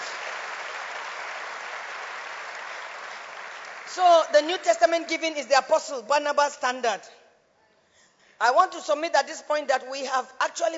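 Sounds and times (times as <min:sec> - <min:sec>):
audience clapping: 0:00.0 - 0:04.7
speech: 0:03.9 - 0:07.2, 0:08.4 - 0:10.7.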